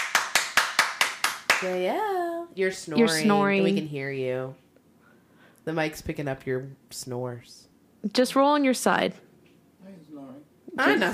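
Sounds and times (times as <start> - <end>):
loud hand clap: 0.0 - 1.8
speech: 1.6 - 4.6, 5.6 - 9.2, 9.8 - 11.1.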